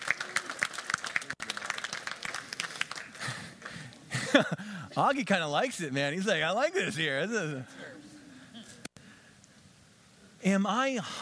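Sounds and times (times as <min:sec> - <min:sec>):
audience applause: 0:00.0 - 0:04.5
speech: 0:04.4 - 0:07.9, 0:10.5 - 0:11.2.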